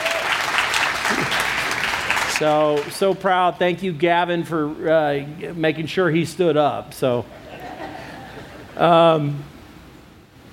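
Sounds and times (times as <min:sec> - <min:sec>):
audience applause: 0:00.0 - 0:03.0
laughter: 0:01.0 - 0:01.8, 0:07.3 - 0:08.8
speech: 0:02.4 - 0:07.5, 0:08.8 - 0:09.5.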